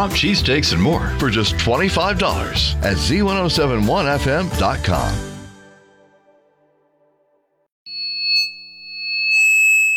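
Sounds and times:
speech: 0.0 - 5.3
high-pitched ringing tone imitating tinnitus: 7.9 - 9.9.

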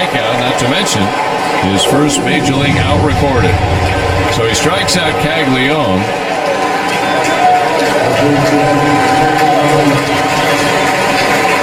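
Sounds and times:
speech: 0.6 - 6.4, 7.2 - 10.3
stadium crowd applauding and cheering: 5.4 - 11.6.

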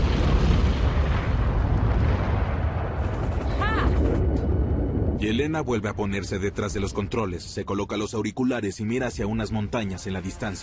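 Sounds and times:
grenade explosion hitting a tower: 0.0 - 5.4
speech: 5.2 - 10.6.

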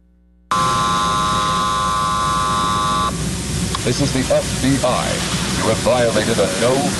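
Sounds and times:
drone buzzing in flight: 0.5 - 3.5
speech: 3.9 - 6.9.

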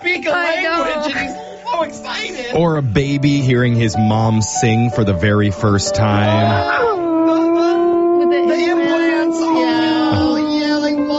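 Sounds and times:
speech: 0.2 - 6.9
person imitating a wolf puppy howling: 6.2 - 11.1.

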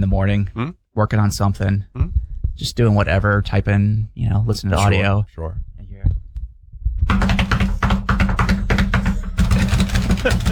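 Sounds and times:
speech: 0.0 - 5.7
knuckles drumming on a desk: 7.1 - 10.5.

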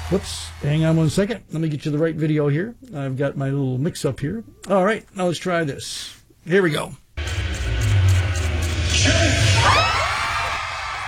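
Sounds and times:
speech: 0.1 - 7.0
crowd cheering and whooping at MasterChef winner announcement: 8.2 - 11.0.

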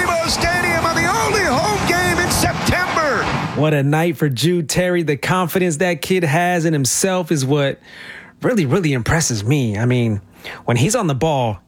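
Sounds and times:
stadium crowd cheering after a goal: 0.0 - 3.7
speech: 3.6 - 11.6.

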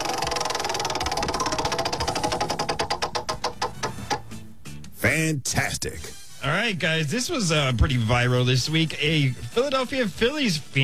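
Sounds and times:
prize wheel spinning: 0.0 - 4.0
speech: 5.2 - 10.8.

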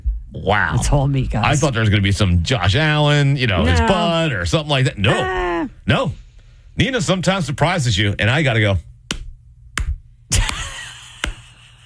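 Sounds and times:
speech: 0.3 - 6.2, 6.8 - 8.9
slow clap: 9.1 - 11.6.

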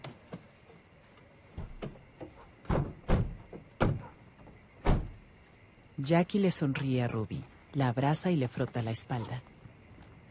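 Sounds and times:
car doors opening and shutting as family exits: 1.5 - 5.2
speech: 6.0 - 9.5.

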